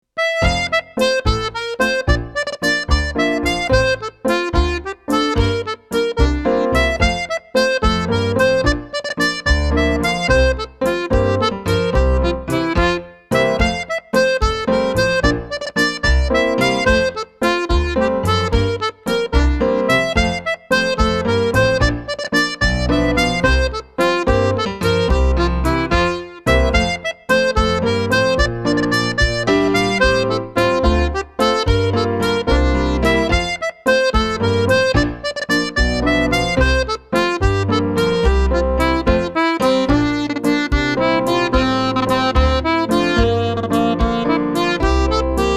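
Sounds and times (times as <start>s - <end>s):
treble jig tune: 0.2s - 45.5s.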